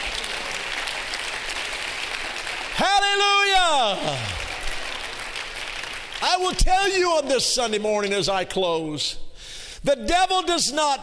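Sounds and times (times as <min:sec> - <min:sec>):
audience clapping hands: 0:00.0 - 0:07.8
speech: 0:06.2 - 0:09.2, 0:09.8 - 0:11.0.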